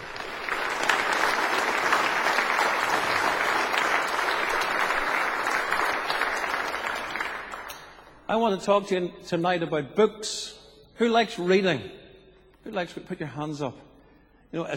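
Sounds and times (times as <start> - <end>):
large audience applause for children's choir: 0.0 - 7.7
speech: 8.4 - 12.0, 12.6 - 13.9, 14.5 - 14.7.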